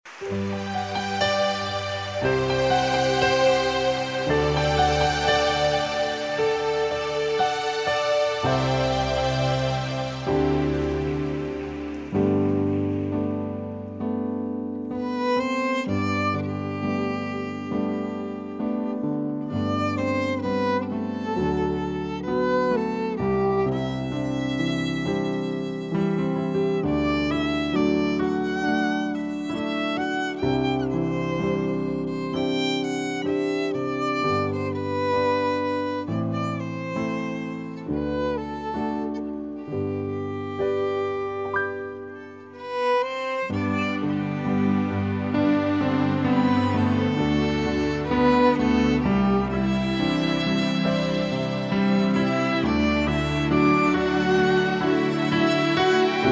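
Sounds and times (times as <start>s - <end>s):
piano and strings: 0.0s - 56.2s.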